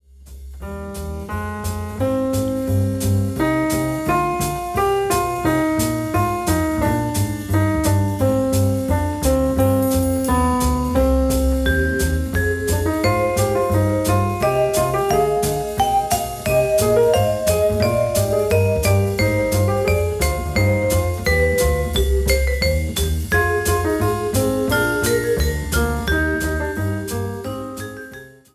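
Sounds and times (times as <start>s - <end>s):
jazz quartet playing: 0.2s - 28.5s.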